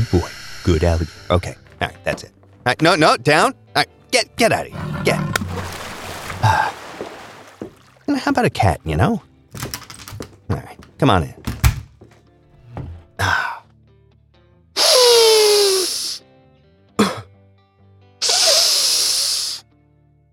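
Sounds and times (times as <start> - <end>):
speech: 0.0 - 5.7, 8.1 - 9.7, 10.5 - 11.5
forceful snorting sniffs: 14.8 - 16.2, 18.2 - 19.6
nasal spray squirts: 14.8 - 16.2, 18.2 - 19.6.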